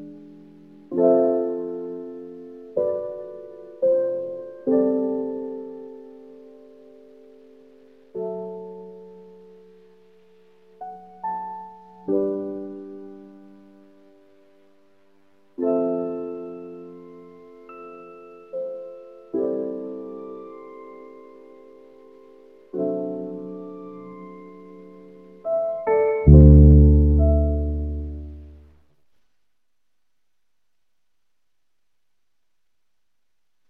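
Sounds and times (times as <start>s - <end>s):
main background music loop: 0.0s - 28.7s.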